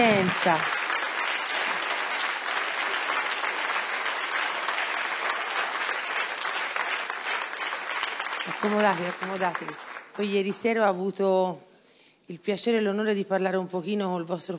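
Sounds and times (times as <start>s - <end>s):
speech: 0.0s - 0.8s, 8.6s - 11.7s, 12.3s - 14.5s
large audience applause: 0.0s - 10.3s.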